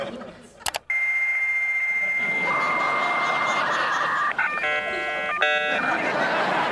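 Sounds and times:
laughter: 0:00.0 - 0:00.6, 0:02.2 - 0:06.6
dial-up modem connecting to the internet: 0:00.7 - 0:02.3, 0:04.2 - 0:05.9.

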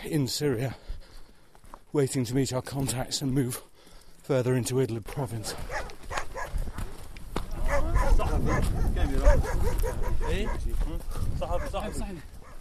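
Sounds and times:
speech: 0:00.0 - 0:00.9, 0:01.9 - 0:05.9, 0:08.4 - 0:12.4
rough outdoor noise: 0:00.0 - 0:12.5
pack of wild dogs barking and yipping: 0:05.5 - 0:07.0, 0:07.6 - 0:12.5.

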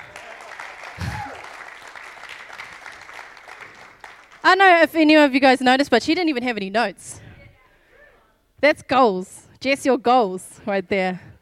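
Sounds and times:
audience applause: 0:00.0 - 0:04.5
speech: 0:04.4 - 0:07.2, 0:08.6 - 0:11.3.

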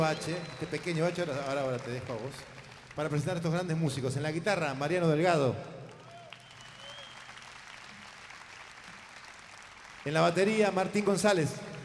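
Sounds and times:
audience applause: 0:00.0 - 0:03.5, 0:05.9 - 0:11.8
speech: 0:00.0 - 0:05.8, 0:10.0 - 0:11.7.

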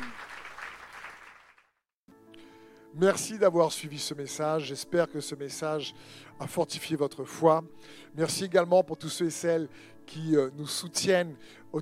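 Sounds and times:
church congregation clapping to acclaim the Lord: 0:00.0 - 0:01.8
speech: 0:02.9 - 0:11.8.

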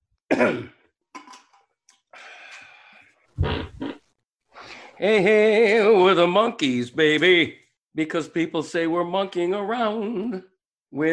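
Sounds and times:
speech: 0:00.4 - 0:00.8, 0:05.0 - 0:11.1
fart: 0:03.4 - 0:04.1.

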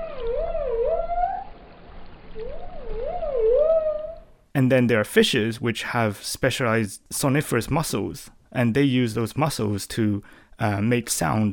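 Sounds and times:
dolphin whistles: 0:00.0 - 0:01.6, 0:02.4 - 0:04.3
speech: 0:04.6 - 0:11.5.

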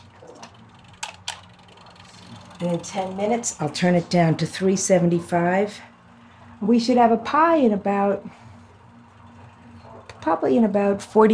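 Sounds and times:
mechanical kitchen timer being wound: 0:00.0 - 0:05.6
low steady hum: 0:00.0 - 0:11.3
speech: 0:02.6 - 0:05.9, 0:06.6 - 0:08.4, 0:10.3 - 0:11.3.

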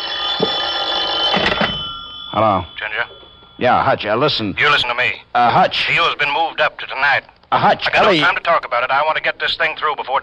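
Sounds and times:
telephone bell ringing: 0:00.0 - 0:05.3
speech: 0:02.4 - 0:03.0, 0:03.6 - 0:10.2.

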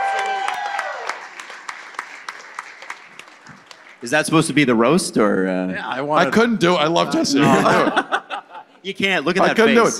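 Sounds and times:
round of applause: 0:00.0 - 0:04.1
speech: 0:04.0 - 0:08.2, 0:08.8 - 0:09.9
laughter: 0:07.1 - 0:08.9.

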